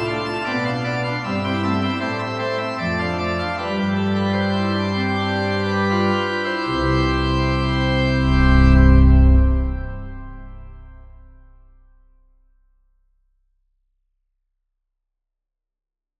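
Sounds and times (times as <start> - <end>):
Organteq organ: 0.0 - 11.5.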